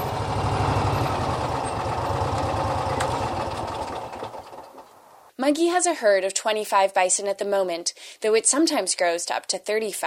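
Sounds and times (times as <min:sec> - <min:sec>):
small ATV engine driving across pasture: 0:00.0 - 0:05.3
speech: 0:05.5 - 0:10.0.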